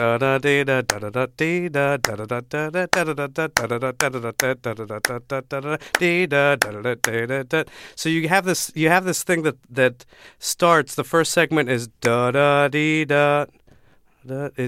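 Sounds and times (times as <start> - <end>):
speech: 0.0 - 13.6, 14.2 - 14.6
hands clapping a rhythmic pattern: 0.9 - 1.1, 2.0 - 7.2.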